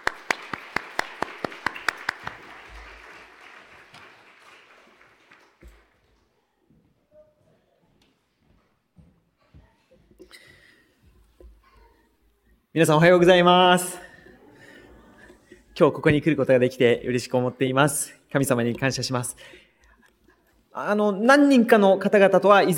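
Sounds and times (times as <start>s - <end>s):
audience applause welcoming a speaker: 0.0s - 6.0s
speech: 12.8s - 14.0s, 15.8s - 19.6s, 20.8s - 22.7s.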